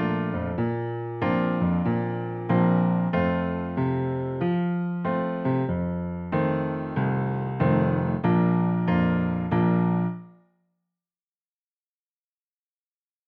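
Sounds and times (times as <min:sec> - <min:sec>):
jazz piano part for alto saxophone studies: 0:00.0 - 0:10.3.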